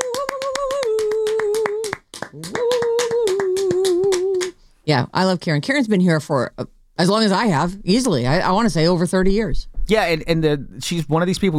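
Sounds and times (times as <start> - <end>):
person whooping: 0.0 - 4.5
applause sound effect clapping: 0.0 - 4.6
speech: 4.9 - 11.5.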